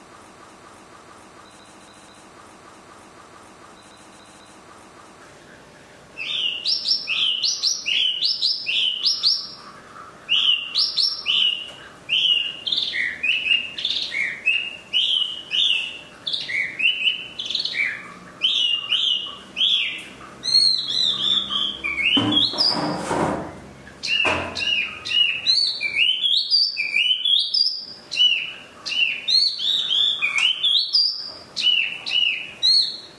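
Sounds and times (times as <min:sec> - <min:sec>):
Chinese hwamei song: 0:06.2 - 0:09.6, 0:10.3 - 0:23.0, 0:24.0 - 0:33.1.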